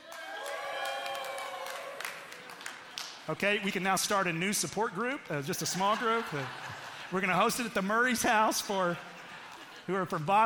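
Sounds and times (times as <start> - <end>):
audience cheering and whooping: 0.0 - 3.0
scattered claps: 0.1 - 3.4
speech: 3.3 - 9.1, 9.9 - 10.4
laughter: 5.4 - 10.4.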